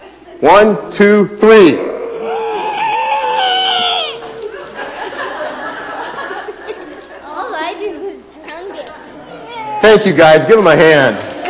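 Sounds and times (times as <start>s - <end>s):
speech: 0.4s - 1.9s, 10.0s - 11.3s
crowd imitating a lion's roar: 2.0s - 4.4s
scattered laughter and chatter: 2.2s - 9.5s, 11.1s - 11.4s.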